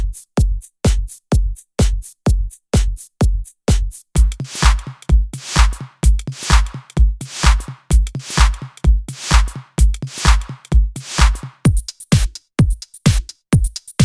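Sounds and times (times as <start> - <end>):
drums: 0.0 - 14.0
snare drum hits: 4.2 - 11.6
claps: 4.3 - 11.6.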